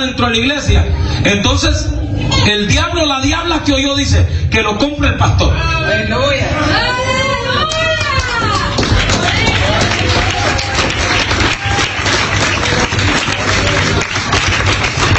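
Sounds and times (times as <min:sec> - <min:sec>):
speech: 0:00.0 - 0:07.9
low hum: 0:00.0 - 0:15.1
scattered half-hearted clapping from a crowd: 0:07.7 - 0:15.1.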